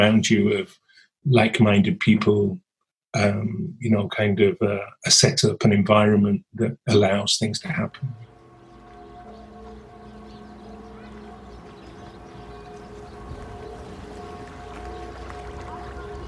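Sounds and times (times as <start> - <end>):
speech: 0.0 - 8.3
bells of midday ringing in Kreuzberg: 8.1 - 16.2.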